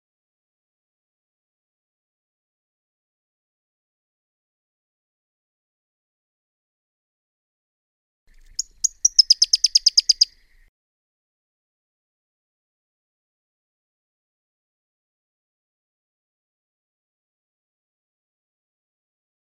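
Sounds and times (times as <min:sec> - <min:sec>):
Pyrrhuloxia giving a rapid chattering series of crisp high chip notes: 0:08.4 - 0:10.3.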